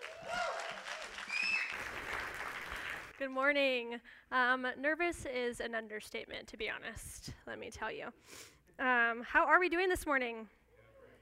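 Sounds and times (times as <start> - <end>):
high cheers and whoops: 0.0 - 1.9
audience applause: 0.0 - 3.2
speech: 3.2 - 10.6.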